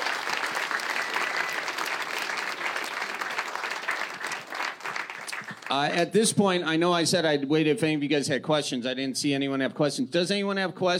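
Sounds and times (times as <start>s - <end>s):
audience applause: 0.0s - 6.0s
speech: 5.7s - 10.9s.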